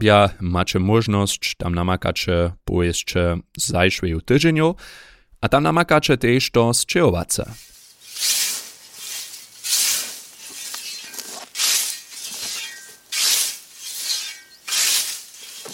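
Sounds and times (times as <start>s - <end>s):
speech: 0.0s - 8.4s
scythe cutting grass: 7.5s - 15.7s.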